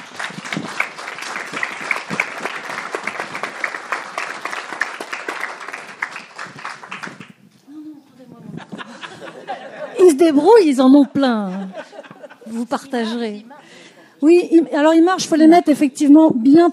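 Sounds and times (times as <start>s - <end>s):
audience applauding: 0.0s - 7.4s
laughter: 8.4s - 14.0s
speech: 10.2s - 11.8s, 12.5s - 13.5s, 14.2s - 16.7s.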